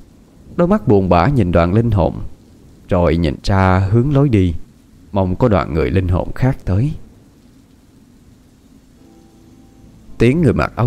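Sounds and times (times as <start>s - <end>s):
steady dense rainfall: 0.0s - 10.8s
speech: 0.6s - 2.3s, 2.9s - 7.0s, 10.2s - 10.8s.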